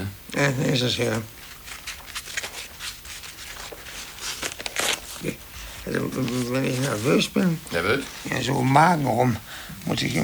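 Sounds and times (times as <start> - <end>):
speech: 0.3 - 1.4, 5.2 - 10.2
paper crinkling and rustling: 1.0 - 9.0.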